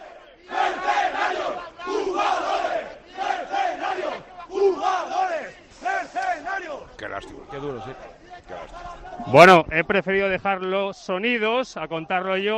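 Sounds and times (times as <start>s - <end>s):
football supporters shouting at team bus arrival: 0.0s - 9.6s
speech: 9.3s - 12.5s.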